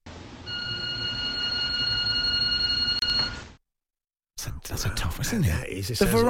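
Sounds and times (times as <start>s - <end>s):
electronic doorbell ringing: 0.5s - 3.4s
speech: 4.4s - 6.2s.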